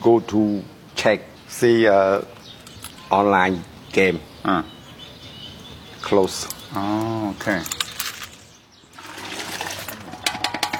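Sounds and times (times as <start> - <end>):
speech: 0.0 - 2.4, 3.1 - 4.8, 6.0 - 7.8
man washing pots with water: 8.9 - 10.7.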